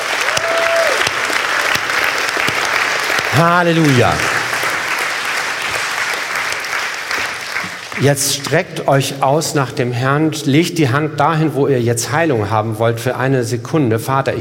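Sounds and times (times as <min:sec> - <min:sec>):
audience applause: 0:00.0 - 0:08.6
speech: 0:03.4 - 0:04.4, 0:08.0 - 0:14.4.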